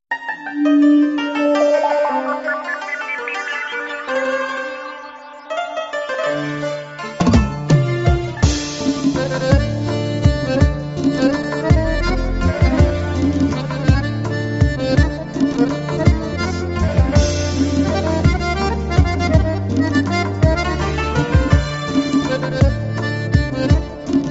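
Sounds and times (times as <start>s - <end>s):
accordion: 0.4s - 24.2s.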